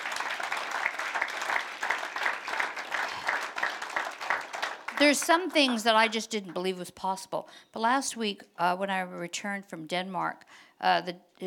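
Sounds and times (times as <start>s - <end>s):
audience hand clapping: 0.0s - 6.4s
speech: 5.0s - 11.4s.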